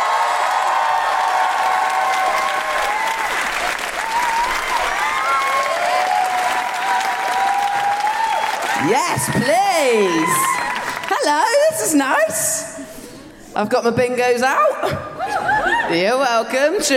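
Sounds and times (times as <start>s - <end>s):
audience applause at a live Amnesty International comedy show: 0.0s - 11.8s
speech: 8.9s - 10.5s, 13.6s - 15.1s, 15.9s - 16.9s.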